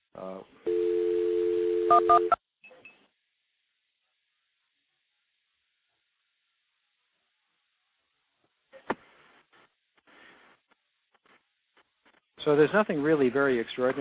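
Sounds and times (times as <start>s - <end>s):
telephone dialing tone through a stack of phone trunks: 0.7s - 2.4s
speech: 2.0s - 2.4s, 12.5s - 13.9s.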